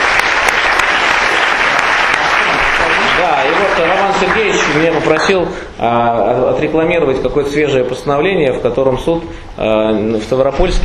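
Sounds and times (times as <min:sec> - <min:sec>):
audience applause for the speakers at the close of a panel discussion: 0:00.0 - 0:05.5
speech: 0:03.6 - 0:10.8.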